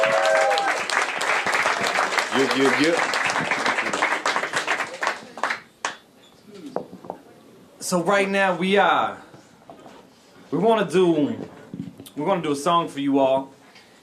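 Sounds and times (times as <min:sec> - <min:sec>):
crowd cheering and whooping: 0:00.0 - 0:02.1
crowd applauding: 0:00.0 - 0:06.0
speech: 0:02.4 - 0:03.6, 0:07.9 - 0:09.3, 0:10.5 - 0:11.6, 0:12.2 - 0:13.6.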